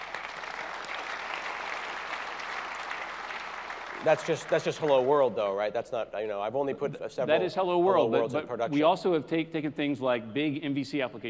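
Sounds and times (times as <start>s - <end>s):
audience clapping: 0.0s - 5.6s
speech: 4.0s - 11.2s.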